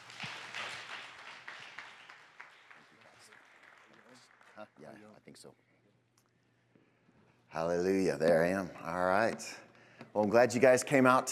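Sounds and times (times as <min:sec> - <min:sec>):
faint audience applause welcoming guest ministers: 0:00.0 - 0:05.2
speech: 0:04.6 - 0:05.8, 0:07.5 - 0:11.2.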